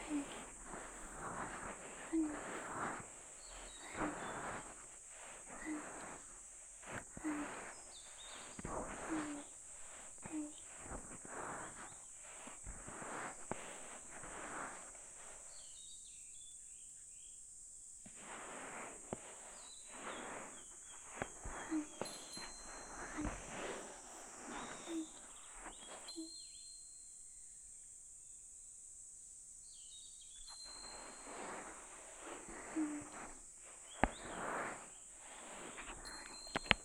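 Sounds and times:
ear massage sounds: 0.0s - 16.1s, 18.0s - 26.7s, 30.4s - 36.8s.

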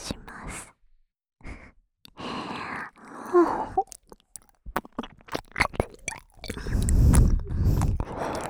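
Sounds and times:
saliva-filled ear licking on the right side: 3.5s - 8.4s.

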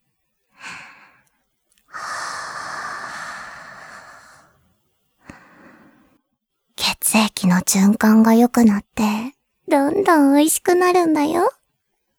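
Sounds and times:
warm breath blown onto skin: 1.9s - 4.5s
speech: 7.2s - 11.6s.

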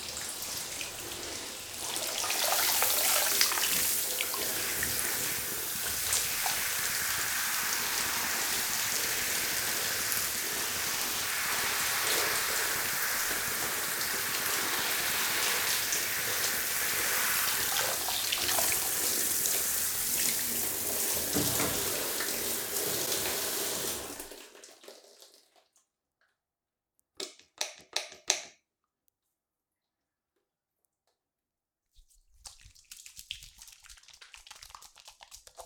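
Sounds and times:
shampooing: 0.0s - 24.4s, 32.0s - 35.6s.

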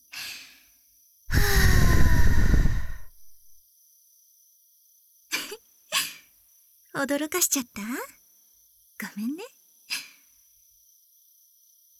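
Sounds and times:
breath blown into an ear to clear out earwax: 1.3s - 3.4s
speech: 7.0s - 8.2s, 9.0s - 9.5s.

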